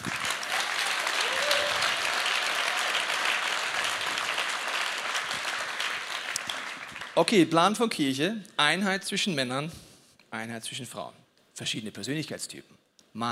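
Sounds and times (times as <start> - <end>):
audience applause: 0.0 - 7.2
speech: 7.2 - 9.8, 10.4 - 13.2.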